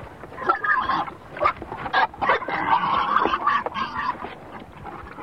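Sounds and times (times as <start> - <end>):
pig squealing: 0.4 - 4.2.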